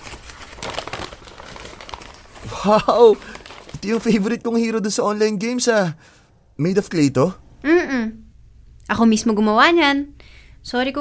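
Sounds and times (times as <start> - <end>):
gift wrapping crinkling and tearing as a present is opened: 0.0 - 4.4
speech: 2.5 - 8.2, 8.9 - 10.9.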